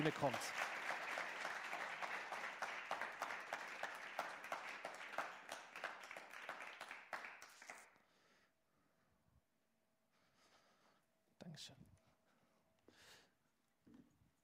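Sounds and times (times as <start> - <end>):
speech: 0.0 - 0.6
audience applause: 0.0 - 7.9.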